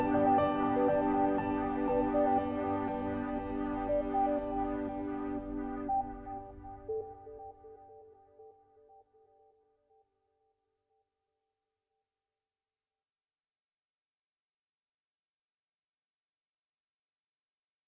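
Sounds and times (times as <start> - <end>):
ambient music: 0.0 - 9.6.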